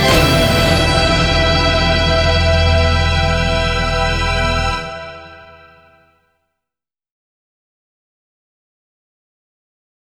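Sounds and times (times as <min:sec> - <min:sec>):
suspense music: 0:00.0 - 0:06.0.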